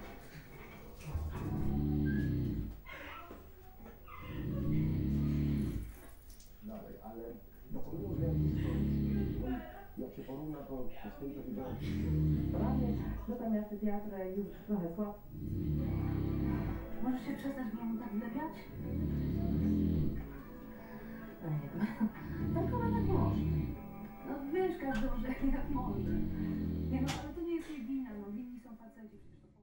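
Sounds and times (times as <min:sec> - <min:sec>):
television: 0:00.0 - 0:29.6
snoring: 0:01.0 - 0:03.0, 0:04.1 - 0:06.1, 0:07.7 - 0:09.8, 0:10.8 - 0:13.5, 0:15.2 - 0:17.8, 0:18.4 - 0:27.5.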